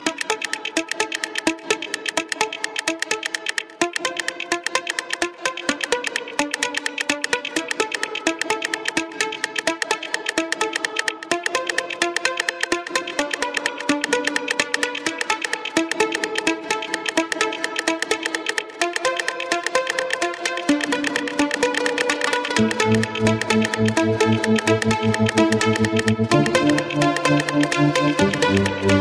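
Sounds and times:
progressive house music: 0.0s - 29.0s.

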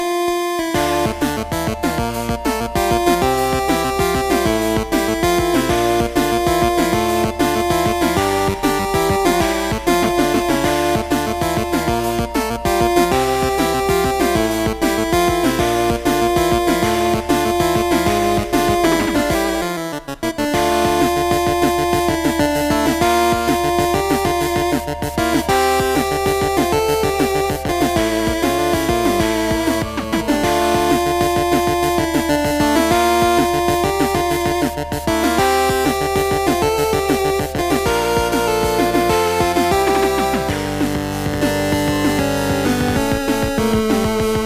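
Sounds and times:
8-bit music: 0.0s - 44.4s.

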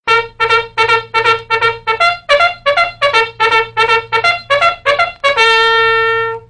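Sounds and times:
military bugle: 0.1s - 6.4s.

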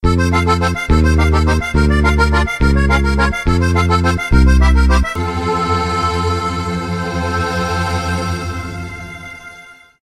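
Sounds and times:
accordion: 0.0s - 9.6s.

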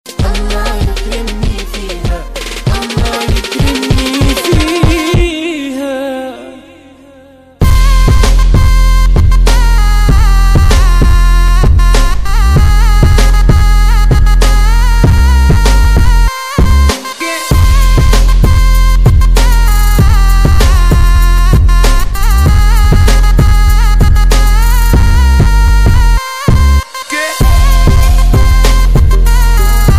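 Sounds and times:
Arabic trap zamil: 0.1s - 6.6s, 7.6s - 29.9s.

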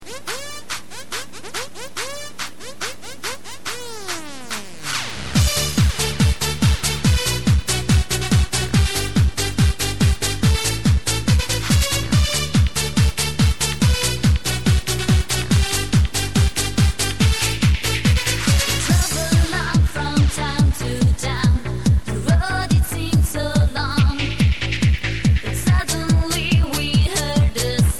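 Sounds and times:
salsa music: 0.0s - 27.9s.

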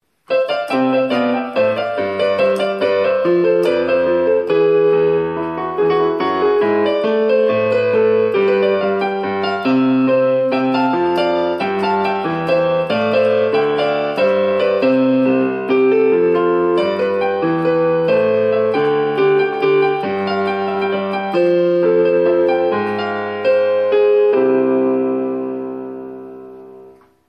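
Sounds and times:
piano improvisation: 0.1s - 27.2s.

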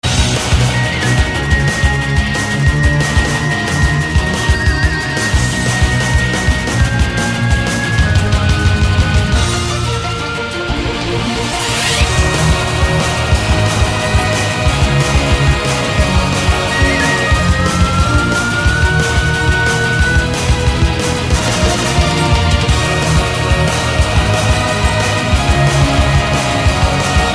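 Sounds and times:
hardstyle music: 0.0s - 27.3s.

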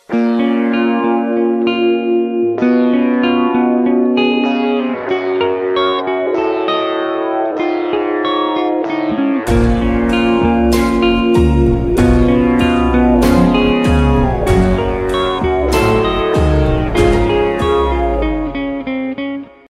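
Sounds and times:
guitar solo: 0.0s - 19.6s.

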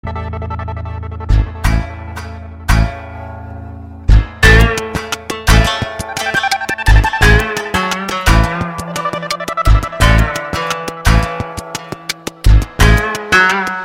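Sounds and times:
guitar text message tone: 4.4s - 13.8s.

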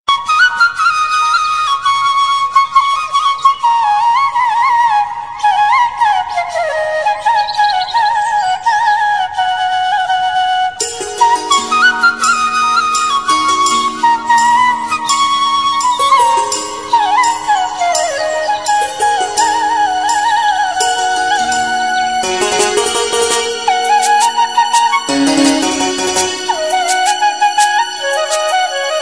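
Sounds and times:
bansuri flute: 0.1s - 29.0s
piano: 10.6s - 29.0s.

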